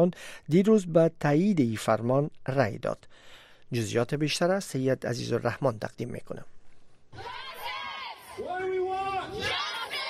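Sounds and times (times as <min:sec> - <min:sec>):
speech: 0:00.0 - 0:07.4
protesters shouting and chanting in front of the US Supreme Court: 0:07.2 - 0:10.0.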